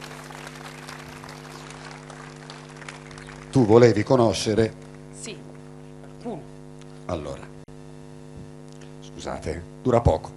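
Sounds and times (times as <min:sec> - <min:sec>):
audience applause: 0:00.0 - 0:05.1
speech: 0:03.6 - 0:05.4, 0:07.1 - 0:07.5, 0:09.2 - 0:10.3.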